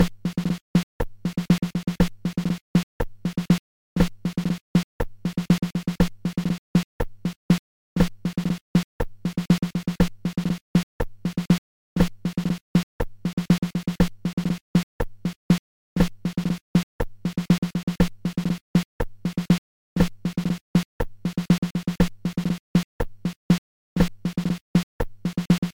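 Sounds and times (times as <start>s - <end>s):
drum: 0.0s - 7.4s, 8.0s - 15.4s, 16.0s - 23.4s, 24.0s - 25.7s.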